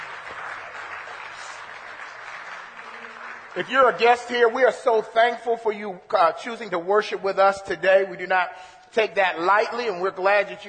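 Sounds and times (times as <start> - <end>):
audience applause for guests: 0.0 - 4.7
speech: 3.6 - 10.6.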